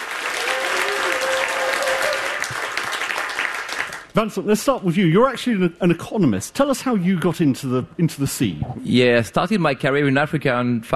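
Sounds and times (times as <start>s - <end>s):
audience applauding as guests are welcomed onto a panel stage: 0.0s - 4.1s
speech: 4.2s - 10.9s.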